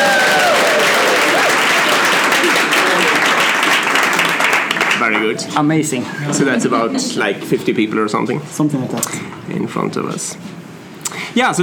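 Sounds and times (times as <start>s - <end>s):
live audience applauding: 0.0s - 5.4s
speech: 5.3s - 10.6s, 11.4s - 11.6s.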